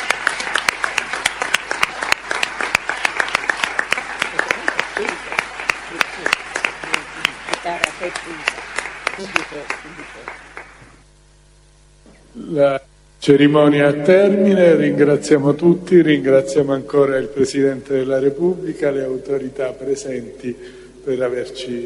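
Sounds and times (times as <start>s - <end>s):
crowd applauding: 0.0s - 11.0s
speech: 8.1s - 8.5s, 9.2s - 10.5s, 12.4s - 21.8s.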